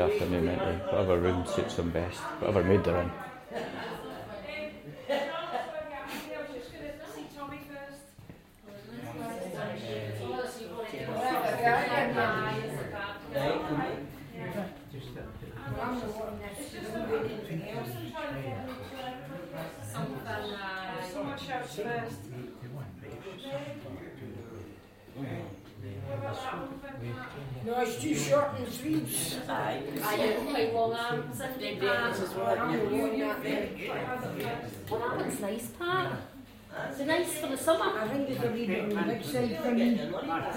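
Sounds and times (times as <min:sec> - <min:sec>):
day care centre soundscape in a care home: 0:00.0 - 0:40.5.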